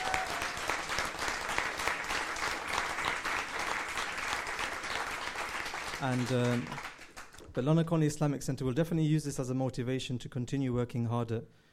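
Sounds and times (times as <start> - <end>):
audience applause: 0.0 - 7.4
speech: 6.0 - 6.9, 7.6 - 11.7.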